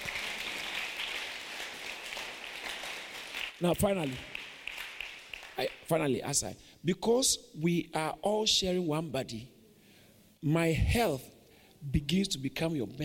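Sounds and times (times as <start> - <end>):
audience clapping: 0.0 - 5.9
speech: 3.6 - 4.3, 5.6 - 9.6, 10.4 - 13.0.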